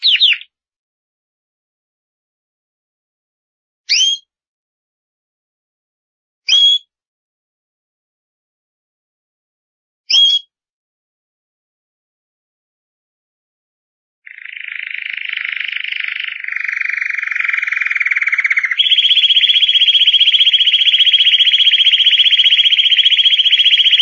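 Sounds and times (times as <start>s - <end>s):
canary singing trills and whistled notes: 0.0s - 0.5s, 3.9s - 4.2s, 14.3s - 24.0s.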